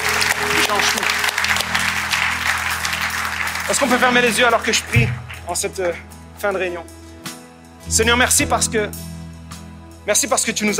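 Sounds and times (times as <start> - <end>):
audience applause: 0.0 - 5.6
speech: 0.7 - 1.3, 3.7 - 7.0, 7.9 - 9.1, 10.0 - 10.7.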